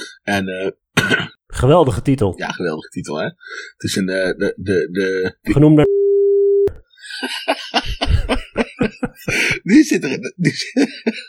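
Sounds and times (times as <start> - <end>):
speech: 0.3 - 6.0, 6.6 - 11.2
beep tone over speech: 5.8 - 6.8
laughter: 7.0 - 11.2.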